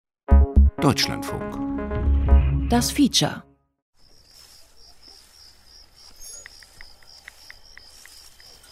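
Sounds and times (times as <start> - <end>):
speech: 0.8 - 1.6, 2.7 - 3.5
insects chirping in an orchard meadow in Berlin Adlershof: 4.0 - 8.7.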